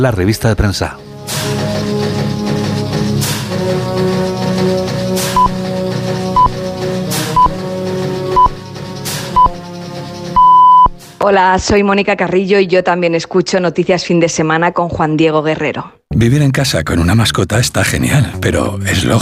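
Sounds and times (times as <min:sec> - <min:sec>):
speech: 0:00.0 - 0:02.4, 0:11.2 - 0:19.2
music bed: 0:00.0 - 0:13.6, 0:16.0 - 0:19.2
radio time signal pips: 0:05.4 - 0:05.6, 0:06.4 - 0:06.6, 0:07.4 - 0:07.6, 0:08.3 - 0:08.6, 0:09.4 - 0:09.6, 0:10.4 - 0:11.0.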